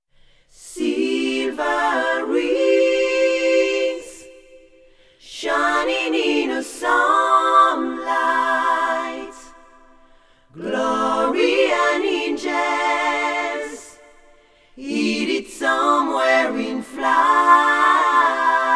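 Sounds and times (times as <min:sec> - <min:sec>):
a cappella intro singing: 0:00.4 - 0:18.7.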